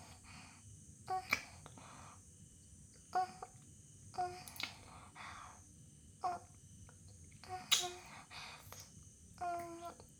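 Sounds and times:
kissing: 1.1 - 1.7, 4.2 - 4.9, 7.4 - 9.9.

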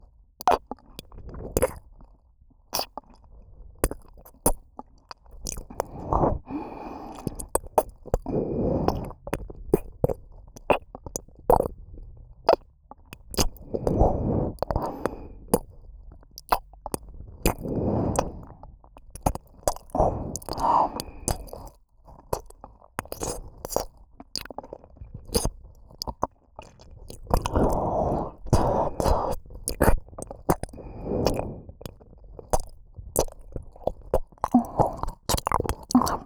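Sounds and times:
ear licking ASMR in the right ear: 5.4 - 11.7, 12.5 - 15.7, 16.4 - 24.7, 25.3 - 36.2.

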